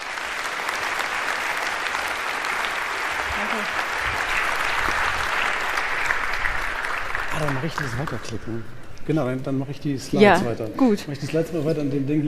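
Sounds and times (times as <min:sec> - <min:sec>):
large audience applause: 0:00.0 - 0:08.6
speech: 0:07.4 - 0:12.2.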